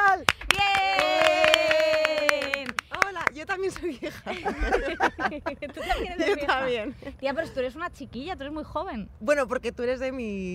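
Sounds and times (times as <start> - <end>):
applause: 0.0 - 4.7
laughter: 3.8 - 7.6
speech: 4.0 - 10.5.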